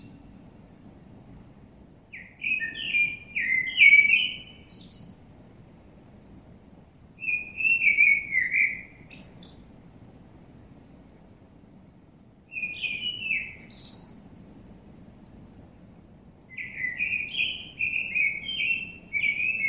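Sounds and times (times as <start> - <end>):
common blackbird Turdus merula song: 0.0 - 0.4, 2.1 - 5.4, 7.2 - 9.7, 12.5 - 14.3, 16.5 - 19.6.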